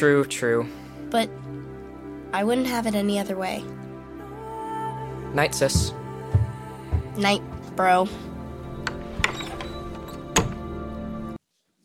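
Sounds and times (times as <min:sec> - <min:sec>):
speech: 0:00.0 - 0:01.5, 0:02.3 - 0:03.8, 0:05.3 - 0:06.0, 0:07.2 - 0:08.3
squeaky door closing: 0:08.6 - 0:11.1.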